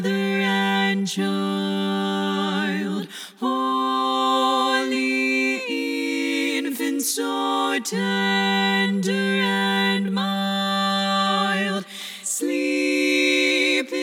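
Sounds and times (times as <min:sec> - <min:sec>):
lead voice singing a carol for SSAA choir: 0:00.0 - 0:14.0.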